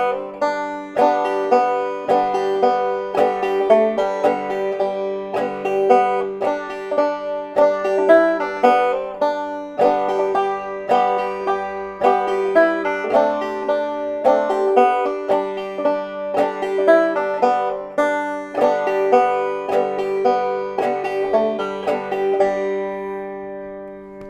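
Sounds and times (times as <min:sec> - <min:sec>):
banjo playing: 0:00.0 - 0:24.2.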